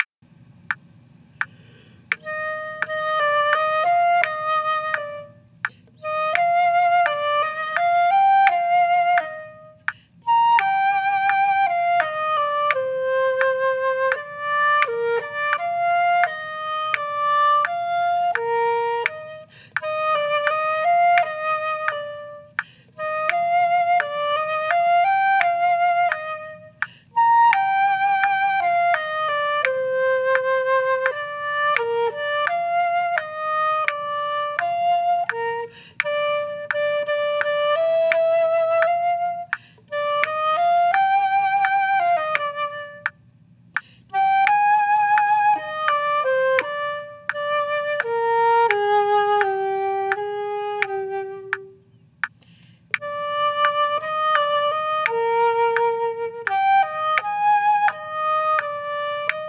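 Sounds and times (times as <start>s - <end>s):
wind instrument duet: 2.1s - 52.2s, 52.9s - 59.4s.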